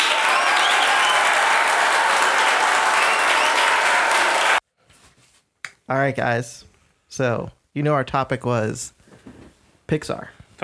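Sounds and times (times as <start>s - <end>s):
applause sound effect: 0.0s - 4.6s
speech: 5.9s - 10.6s.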